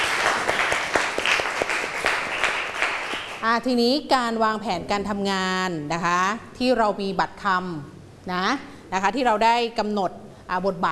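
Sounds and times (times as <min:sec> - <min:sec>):
classroom students clapping: 0:00.0 - 0:03.4
speech: 0:03.4 - 0:10.9.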